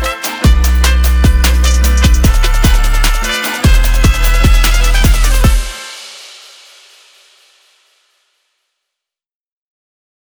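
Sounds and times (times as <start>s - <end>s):
modern Latin hip hop music: 0.0s - 6.4s.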